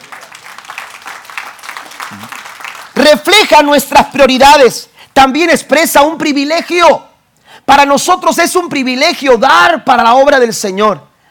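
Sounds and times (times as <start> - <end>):
audience applause: 0.0 - 3.0
speech: 2.1 - 2.4, 3.0 - 7.1, 7.7 - 11.1.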